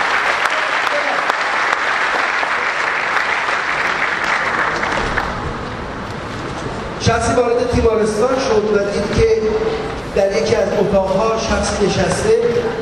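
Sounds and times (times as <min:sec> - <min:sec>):
church congregation applauding: 0:00.0 - 0:05.8
speech: 0:07.2 - 0:12.7.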